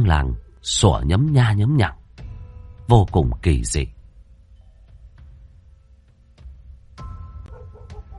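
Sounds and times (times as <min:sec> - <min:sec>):
speech: 0:00.0 - 0:02.0, 0:02.9 - 0:04.0
flock of barn owls screeching overhead: 0:07.5 - 0:08.1.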